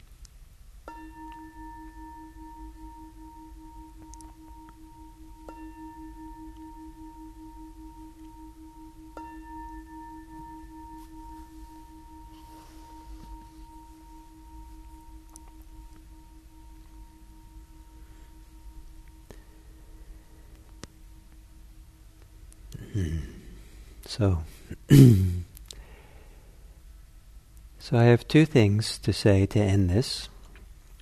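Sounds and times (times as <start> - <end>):
meditation bell ringing to end sitting: 0.9 - 22.5
speech: 24.1 - 25.3, 27.9 - 30.3.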